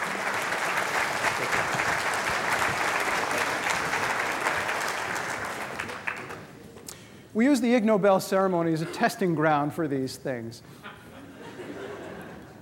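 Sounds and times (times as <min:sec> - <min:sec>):
audience applause: 0:00.0 - 0:06.6
speech: 0:07.4 - 0:10.8
laughter: 0:10.7 - 0:12.6.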